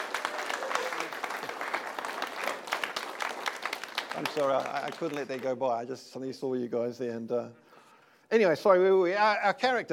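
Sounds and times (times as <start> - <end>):
congregation applauding a newly married couple: 0.0 - 5.7
speech: 4.2 - 7.6, 8.3 - 9.9.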